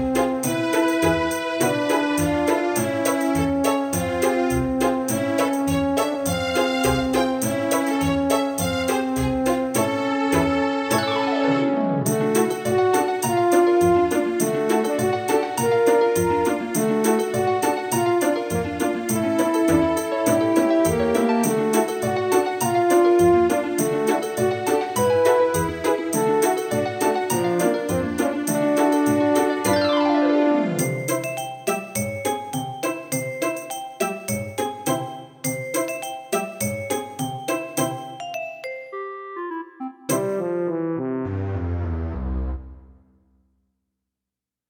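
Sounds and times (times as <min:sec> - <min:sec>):
synthesizer soundset: 0:00.0 - 0:43.0.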